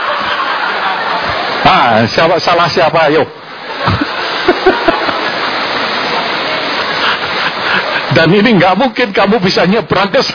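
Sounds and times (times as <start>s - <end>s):
laughter: 0.0s - 1.7s, 3.6s - 8.3s
heavy rain: 0.0s - 10.3s
speech: 1.8s - 3.4s, 8.1s - 10.3s
low thumps and splashes: 3.8s - 8.1s.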